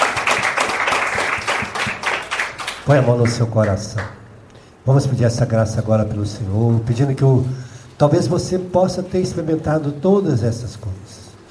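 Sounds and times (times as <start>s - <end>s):
crowd applause: 0.0s - 3.4s
speech: 2.9s - 4.2s, 4.8s - 11.0s.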